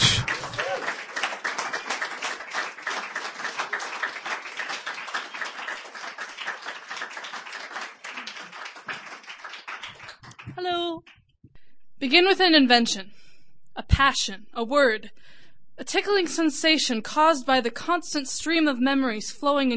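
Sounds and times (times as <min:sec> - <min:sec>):
audience applause at a reading event: 0:00.0 - 0:10.6
speech: 0:12.0 - 0:13.2, 0:14.0 - 0:19.7.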